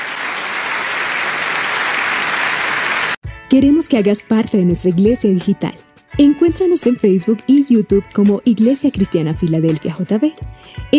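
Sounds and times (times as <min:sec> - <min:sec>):
audience applauding loudly: 0:00.0 - 0:03.2
speech: 0:03.5 - 0:10.9.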